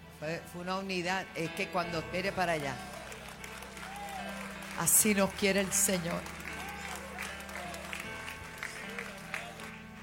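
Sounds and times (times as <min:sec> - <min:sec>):
speech: 0:00.2 - 0:02.9, 0:04.8 - 0:06.4
audience applause: 0:02.4 - 0:10.0.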